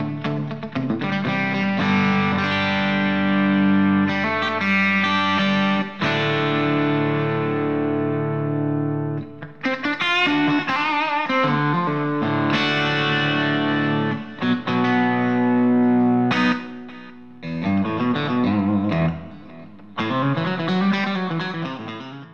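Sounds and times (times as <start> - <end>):
guitar through clean boost pedal: 0.0 - 22.3.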